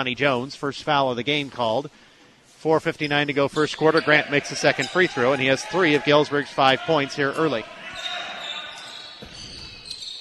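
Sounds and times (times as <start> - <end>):
speech: 0.0 - 2.0, 2.6 - 7.8
steady noise: 0.0 - 10.1
basketball dribbled during a Galesburg versus Rantoul game: 8.0 - 10.1.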